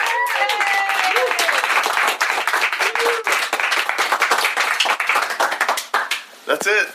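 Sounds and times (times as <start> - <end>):
person whooping: 0.0 - 1.7, 2.8 - 3.4
crowd applauding: 0.0 - 6.3
speech: 6.5 - 6.9.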